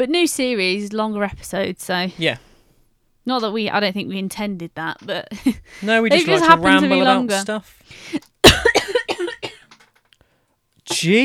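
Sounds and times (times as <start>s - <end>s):
speech: 0.0s - 2.5s, 3.2s - 8.7s, 10.9s - 11.2s
coughing fit after something catches in the throat: 6.1s - 7.4s, 8.4s - 9.7s, 10.9s - 11.2s.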